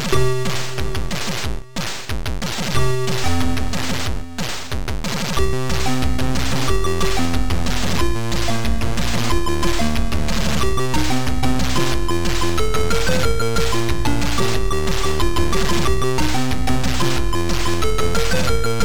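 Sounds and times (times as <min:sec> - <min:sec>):
techno music: 0:00.2 - 0:01.8, 0:02.8 - 0:18.8.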